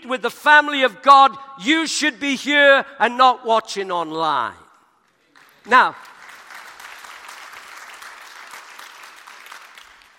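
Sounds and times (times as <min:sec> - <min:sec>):
speech: 0:00.0 - 0:04.6, 0:05.6 - 0:06.1
audience applause: 0:05.4 - 0:10.1.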